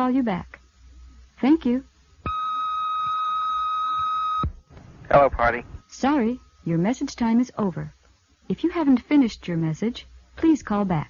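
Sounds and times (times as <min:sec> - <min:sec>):
speech: 0:00.0 - 0:00.6, 0:01.4 - 0:01.9, 0:05.1 - 0:11.0
answering machine tone before recording message: 0:02.3 - 0:04.5.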